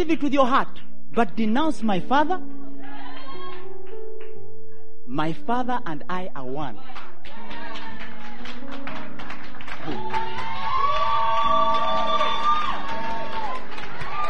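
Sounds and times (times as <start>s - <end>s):
speech: 0.0s - 2.6s, 5.1s - 7.4s, 9.8s - 10.2s
people cheering and whooping: 2.7s - 3.8s, 7.0s - 14.2s
audience clapping: 3.1s - 4.4s, 6.9s - 14.2s.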